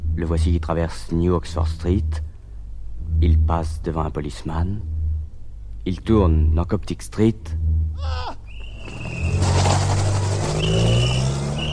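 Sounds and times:
speech: 0:00.2 - 0:02.3, 0:03.2 - 0:04.9, 0:05.8 - 0:09.1
car accelerating away: 0:07.4 - 0:11.7.

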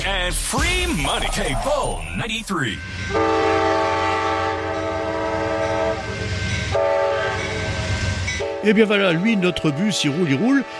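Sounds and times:
passing Amtrak train: 0:00.0 - 0:10.7
speech: 0:00.1 - 0:03.5, 0:08.6 - 0:10.7
Amtrak train horn: 0:03.0 - 0:10.7.

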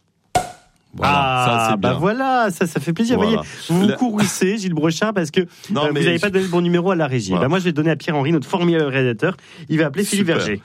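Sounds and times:
champagne cork popping: 0:00.3 - 0:00.9
speech: 0:01.0 - 0:10.6.

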